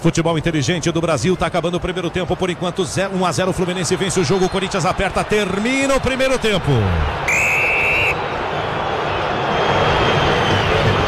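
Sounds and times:
speech: 0.0s - 7.5s
Corinthians fans booing in stadium: 3.6s - 11.0s.

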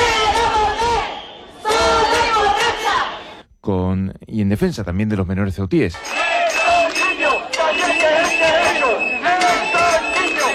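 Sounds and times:
protest crowd chanting slogans: 0.0s - 3.4s, 6.0s - 10.5s
speech: 3.7s - 6.2s.

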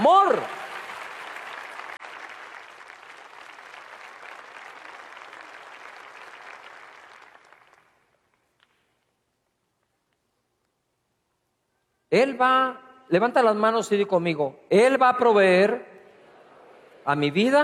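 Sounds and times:
audience applause: 0.0s - 8.2s
speech: 12.1s - 15.9s, 17.0s - 17.6s.

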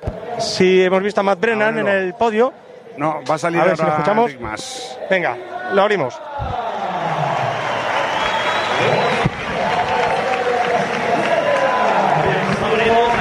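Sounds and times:
speech: 0.4s - 6.6s
amplified voice speaking: 3.0s - 5.4s
large crowd applauding and cheering: 6.4s - 13.1s.

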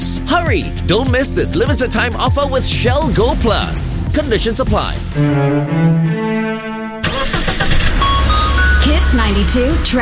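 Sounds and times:
speech: 0.3s - 6.8s, 9.1s - 9.9s
car engine starting: 3.1s - 9.9s.

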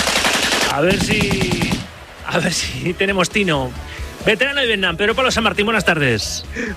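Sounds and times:
machine gun fire sound effect: 0.0s - 2.0s
speech: 0.8s - 1.6s, 2.3s - 6.7s.

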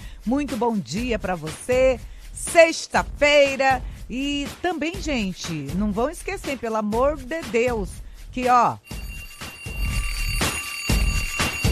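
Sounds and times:
speech: 0.2s - 9.0s
doorbell ringing: 8.8s - 11.6s.

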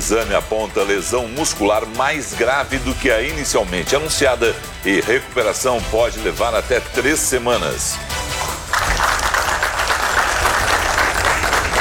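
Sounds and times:
speech: 0.1s - 8.2s
applause for woman leaving hospital: 8.4s - 11.7s.

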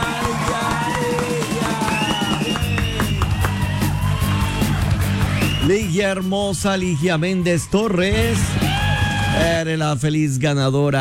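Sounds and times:
applause: 0.0s - 6.0s
speech: 5.7s - 8.6s, 9.4s - 10.9s.

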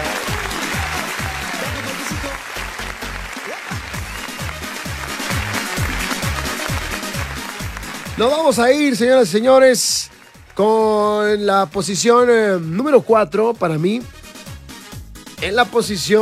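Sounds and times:
applause: 0.0s - 12.2s
speech: 8.2s - 14.2s, 15.4s - 16.2s.

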